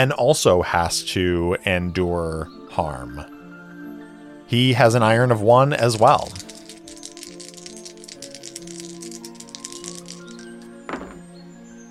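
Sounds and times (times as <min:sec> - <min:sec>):
speech: 0:00.0 - 0:03.3, 0:04.5 - 0:06.5
dice rattling and clattering: 0:05.8 - 0:11.3.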